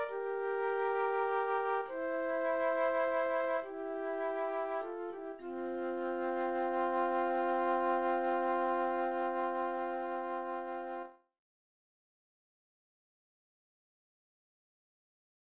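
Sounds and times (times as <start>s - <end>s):
flute solo: 0.0s - 11.2s.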